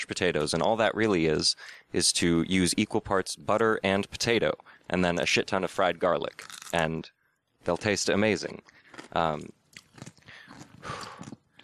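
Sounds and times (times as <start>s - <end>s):
speech: 0.0s - 10.1s
crunchy chewing of pickles: 6.3s - 6.8s, 8.6s - 11.6s.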